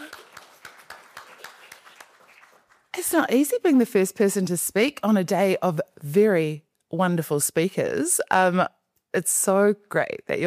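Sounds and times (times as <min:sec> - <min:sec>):
audience clapping at a school speaking event: 0:00.0 - 0:03.2
speech: 0:03.0 - 0:10.4.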